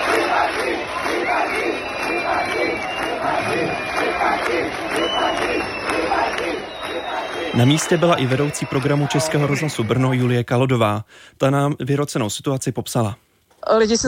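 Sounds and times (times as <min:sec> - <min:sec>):
crowd whistling: 0:00.0 - 0:10.4
speech: 0:07.6 - 0:14.0.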